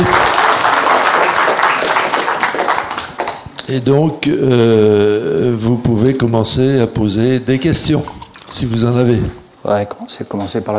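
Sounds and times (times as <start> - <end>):
audience applause: 0.0 - 3.4
speech: 3.7 - 10.7.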